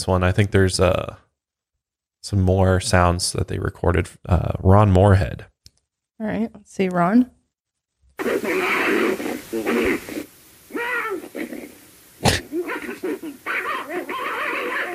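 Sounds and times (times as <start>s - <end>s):
speech: 0.0s - 1.2s, 2.2s - 5.5s, 6.2s - 7.4s, 8.2s - 8.9s, 9.5s - 10.2s
dogs fighting: 8.2s - 14.9s.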